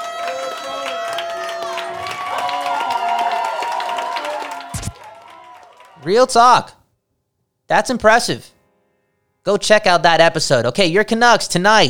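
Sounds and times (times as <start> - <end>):
round of applause: 0.0 - 6.3
speech: 6.0 - 6.8, 7.7 - 8.6, 9.4 - 11.8.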